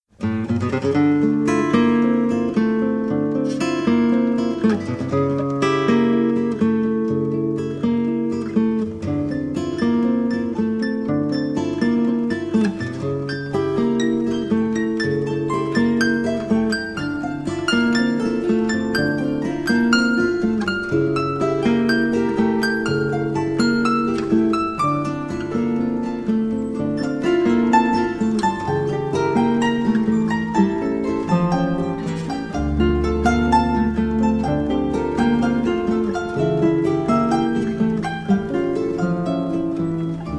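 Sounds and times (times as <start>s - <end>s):
milonga music: 0.2s - 40.3s.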